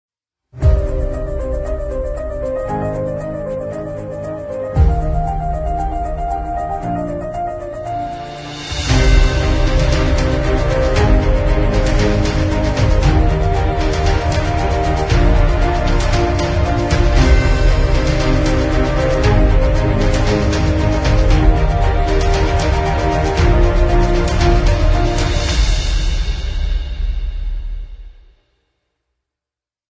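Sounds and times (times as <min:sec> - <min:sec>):
orchestral strings: 0:00.6 - 0:27.5
beautiful piano: 0:00.6 - 0:28.3
orchestral percussion instruments: 0:00.6 - 0:28.4
woodwind instruments: 0:04.0 - 0:26.4
brass instruments: 0:07.9 - 0:26.9.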